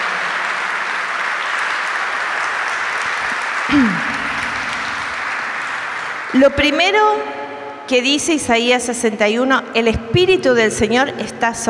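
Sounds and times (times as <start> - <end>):
audience applauding: 0.0 - 6.7
speech: 3.7 - 4.1, 6.3 - 11.6.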